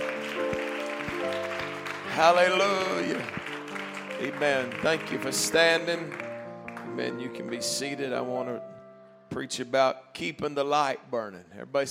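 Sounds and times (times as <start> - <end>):
rhythmic audience clapping: 0.0 - 7.7
sustained organ-like music: 0.0 - 10.1
speech: 2.2 - 3.4, 4.2 - 6.2, 6.9 - 8.7, 9.3 - 11.8.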